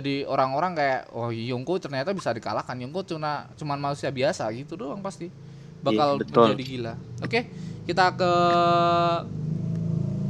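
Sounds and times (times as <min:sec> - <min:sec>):
speech: 0:00.0 - 0:09.5
motorcycle passing by: 0:05.3 - 0:10.2.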